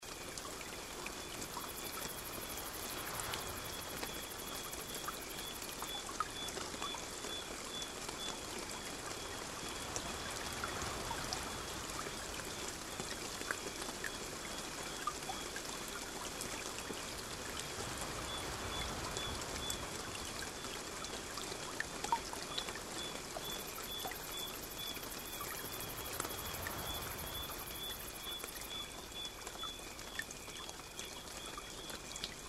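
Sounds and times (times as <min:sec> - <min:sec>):
tropical night nature sounds: 0:00.0 - 0:32.4.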